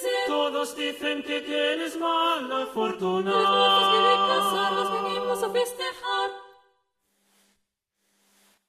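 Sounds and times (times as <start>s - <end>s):
four voices singing: 0.0s - 6.5s.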